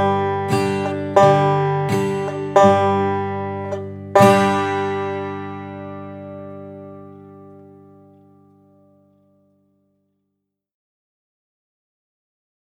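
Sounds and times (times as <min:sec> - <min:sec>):
blues music: 0:00.0 - 0:08.4.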